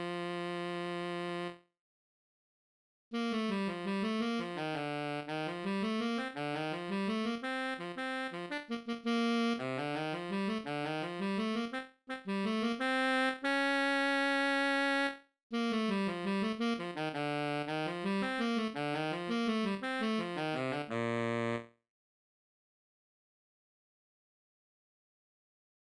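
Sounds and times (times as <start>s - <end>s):
baritone saxophone: 0.0s - 1.6s, 3.2s - 21.7s.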